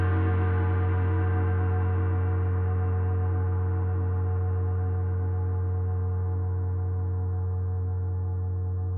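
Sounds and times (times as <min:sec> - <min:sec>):
gongs: 0:00.0 - 0:08.8.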